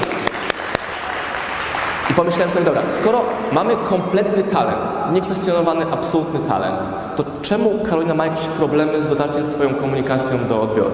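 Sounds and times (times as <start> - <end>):
crowd applause: 0.0 - 3.8
speech: 2.2 - 10.9.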